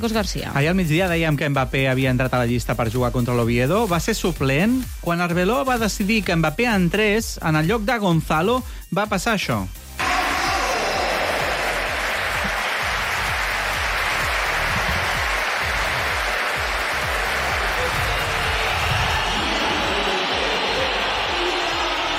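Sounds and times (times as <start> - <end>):
speech: 0.0 - 9.8
dense stadium applause: 10.0 - 22.1
large stadium crowd roaring: 10.0 - 22.1.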